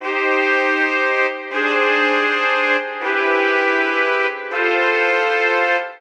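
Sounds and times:
trumpets: 0.0 - 5.9.

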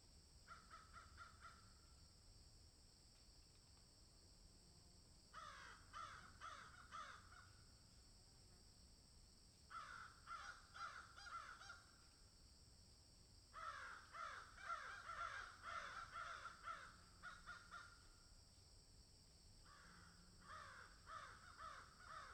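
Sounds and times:
crow giving hoarse downslurred caws: 0.5 - 1.7, 5.4 - 7.6, 9.7 - 11.9, 13.6 - 18.1, 19.7 - 22.3.

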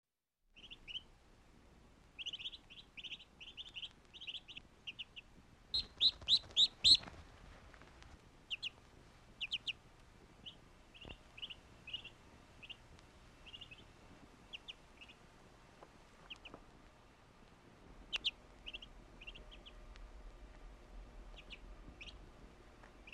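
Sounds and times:
duck peeping with thin high downslurred notes: 0.6 - 1.1, 2.2 - 7.2, 8.4 - 15.3, 16.2 - 16.6, 18.0 - 19.9, 21.3 - 22.2, 23.0 - 23.1.

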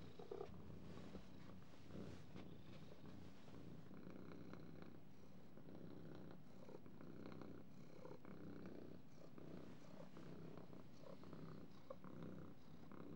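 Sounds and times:
cat purring in a low steady rumble: 0.0 - 13.1.

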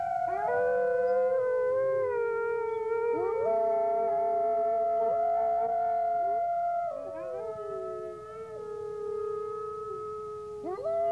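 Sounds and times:
wolves howling together: 0.0 - 11.1.

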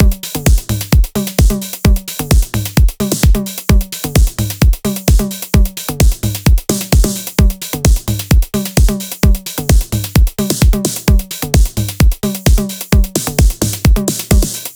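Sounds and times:
full eurodance drum beat: 0.0 - 14.7.

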